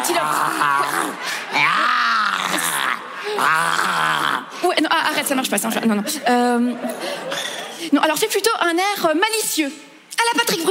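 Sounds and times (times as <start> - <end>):
speech: 0.1 - 2.1, 3.3 - 10.6
voice imitating a tiger growl: 0.1 - 4.5.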